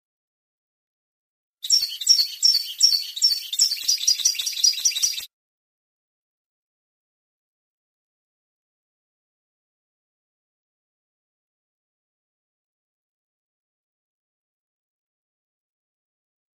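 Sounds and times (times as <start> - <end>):
European goldfinch song: 1.6 - 5.3.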